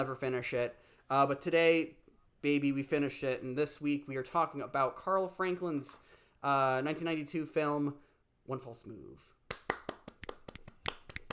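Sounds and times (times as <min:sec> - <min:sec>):
speech: 0:00.0 - 0:09.4
hand claps: 0:09.5 - 0:11.3.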